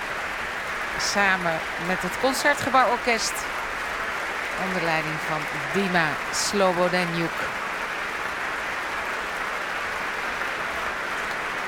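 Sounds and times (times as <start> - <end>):
concert audience applause in Amsterdam: 0.0 - 11.6
speech: 1.0 - 3.6, 4.6 - 7.6.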